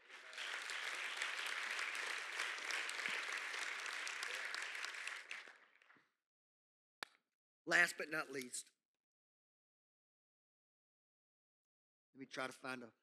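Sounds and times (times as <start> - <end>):
audience clapping hands: 0.0 - 6.1
speech: 7.7 - 8.8, 12.2 - 13.0.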